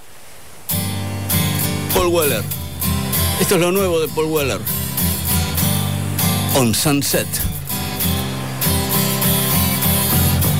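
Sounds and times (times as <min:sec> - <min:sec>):
sea waves rushing: 0:00.0 - 0:10.5
speech: 0:02.0 - 0:02.6, 0:03.4 - 0:04.8, 0:06.5 - 0:08.2.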